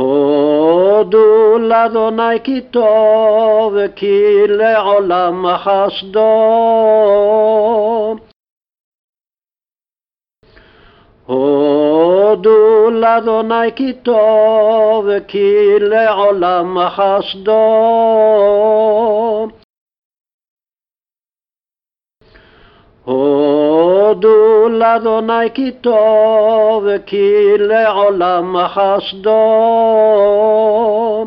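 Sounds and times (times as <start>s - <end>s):
person singing a refrain: 0.0s - 8.3s, 11.3s - 19.6s, 23.0s - 31.2s.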